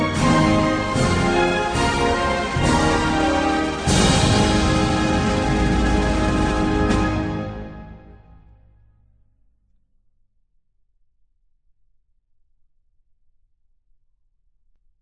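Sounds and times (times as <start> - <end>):
national anthem music: 0.0 - 8.6.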